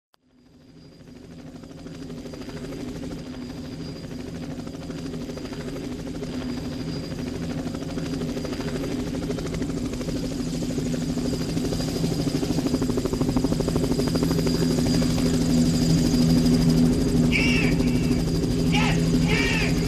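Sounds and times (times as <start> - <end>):
helicopter: 0.2 - 19.8
person singing: 17.3 - 19.8.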